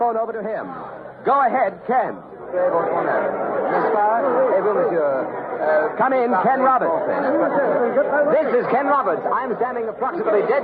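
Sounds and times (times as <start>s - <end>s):
speech: 0.0s - 10.6s
massive crowd murmuring in the Place de la Bastille: 2.2s - 10.6s.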